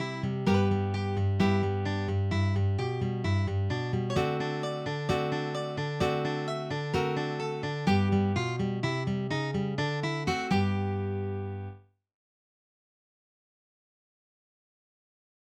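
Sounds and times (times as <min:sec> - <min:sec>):
blues music: 0:00.0 - 0:11.7.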